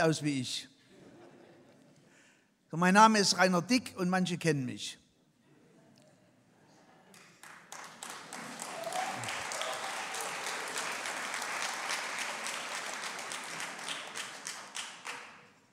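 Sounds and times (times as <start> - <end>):
speech: 0.0 - 0.7, 2.7 - 5.0
laughter: 0.9 - 2.2
audience applause: 7.1 - 15.6.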